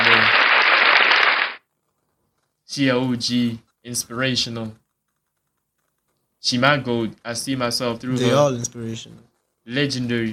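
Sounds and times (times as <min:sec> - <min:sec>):
applause sound effect: 0:00.0 - 0:01.6
speech: 0:02.7 - 0:04.8, 0:06.4 - 0:10.3.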